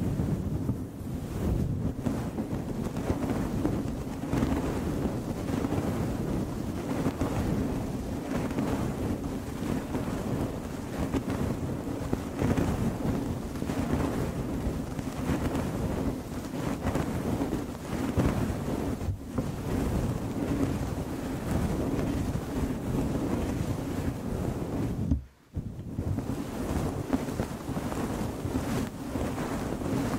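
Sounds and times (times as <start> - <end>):
gentle microphone scratching and swirling: 0.0 - 30.1.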